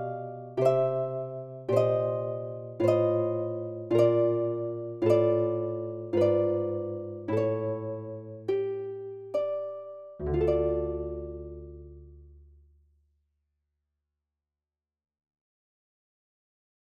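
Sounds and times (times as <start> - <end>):
harp playing a chaconne: 0.0 - 12.4.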